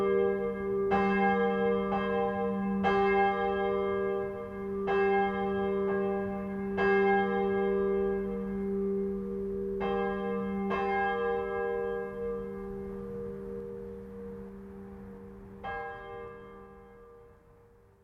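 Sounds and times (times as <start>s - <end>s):
church bells ringing together: 0.0s - 17.3s.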